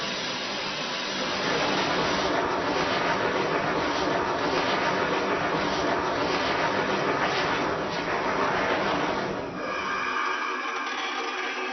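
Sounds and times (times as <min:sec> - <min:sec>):
trains: 0:00.0 - 0:11.6.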